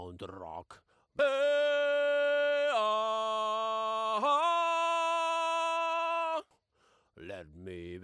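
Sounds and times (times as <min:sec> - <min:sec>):
choir voices: 0:01.2 - 0:06.4.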